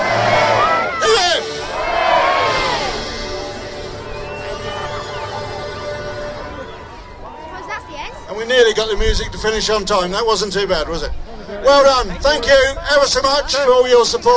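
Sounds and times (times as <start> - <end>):
crowd giving three cheers: 0.0 - 9.9
speech: 8.8 - 14.3.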